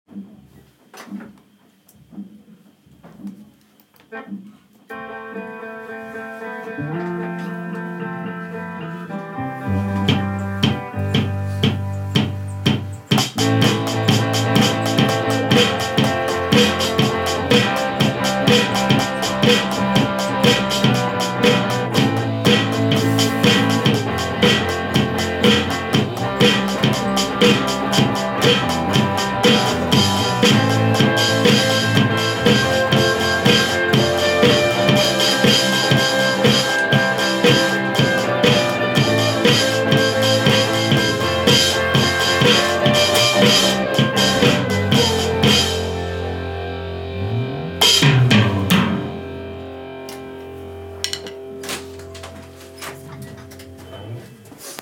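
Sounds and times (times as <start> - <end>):
live drums playing: 9.9 - 46.4, 47.1 - 49.6, 51.0 - 51.5.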